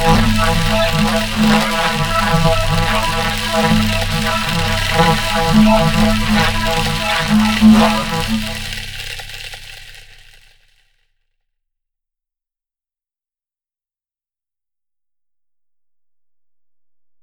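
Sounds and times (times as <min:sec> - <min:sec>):
low crazy didgeridoo atmosphere: 0:00.0 - 0:09.4.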